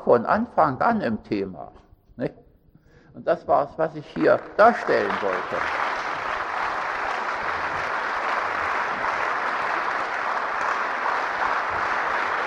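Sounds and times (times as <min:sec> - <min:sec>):
speech: 0:00.1 - 0:02.4, 0:03.2 - 0:05.8
audience clapping: 0:04.2 - 0:12.4.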